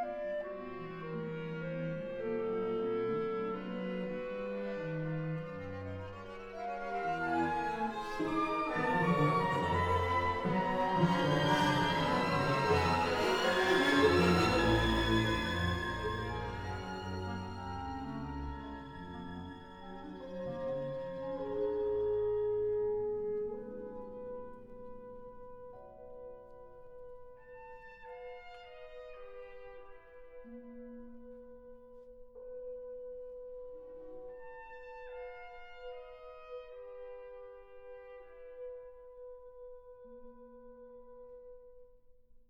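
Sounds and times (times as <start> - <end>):
orchestra playing moderately moving eighth-note pieces: 0.1 - 25.0.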